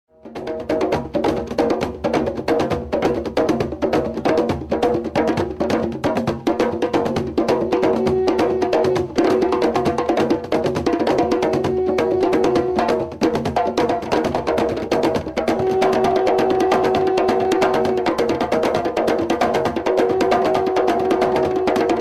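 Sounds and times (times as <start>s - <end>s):
Zulu war drummers: 0.4s - 21.9s.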